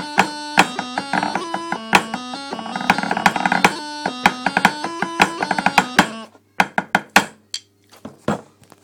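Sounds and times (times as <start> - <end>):
Galician jig tune: 0.0 - 6.3.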